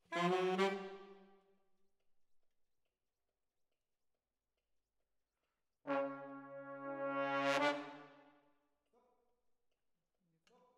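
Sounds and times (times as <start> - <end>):
brass instruments: 5.8 - 8.3.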